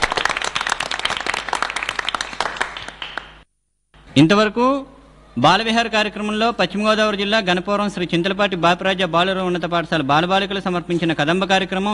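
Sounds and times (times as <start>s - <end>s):
audience applause for schoolchildren at a school programme: 0.0s - 3.4s
speech: 4.2s - 11.9s.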